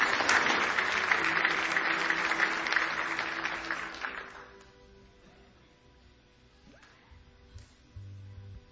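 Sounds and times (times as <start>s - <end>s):
audience applause: 0.0s - 4.6s.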